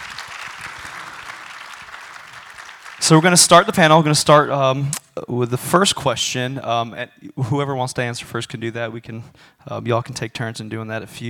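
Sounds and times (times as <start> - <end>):
audience applause: 0.0 - 3.8
speech: 3.0 - 11.2.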